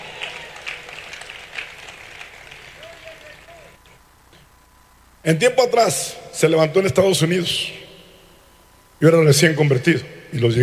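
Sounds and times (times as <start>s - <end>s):
audience applause: 0.0s - 3.8s
speech: 5.2s - 7.8s, 9.0s - 10.6s.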